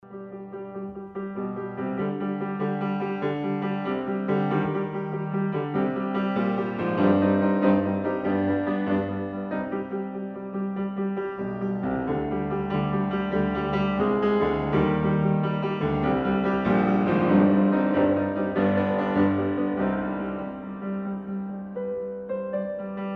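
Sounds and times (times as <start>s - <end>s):
classical impromptu in C minor: 0.2s - 23.1s.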